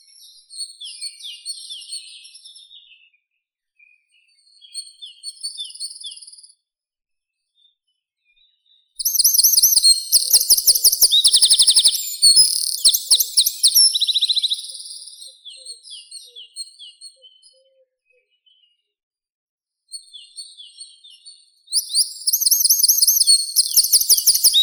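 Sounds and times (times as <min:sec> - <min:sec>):
wren Troglodytes troglodytes singing: 0:09.0 - 0:15.0, 0:21.8 - 0:24.6.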